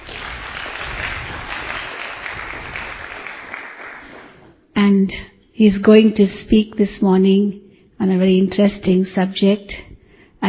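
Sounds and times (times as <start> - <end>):
audience applauding to welcome a speaker: 0.0 - 4.6
speech: 4.9 - 10.4.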